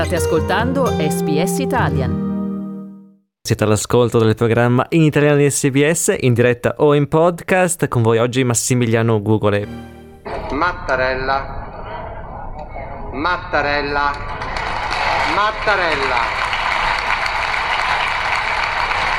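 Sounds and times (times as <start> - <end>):
speech: 0.0 - 2.2, 3.4 - 11.8, 13.2 - 14.5, 15.4 - 16.5
long applause in parliament: 14.2 - 19.1.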